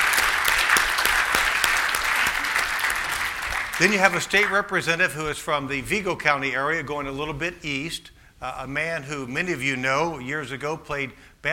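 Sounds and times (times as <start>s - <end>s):
audience applause: 0.0s - 4.6s
speech: 3.8s - 11.5s.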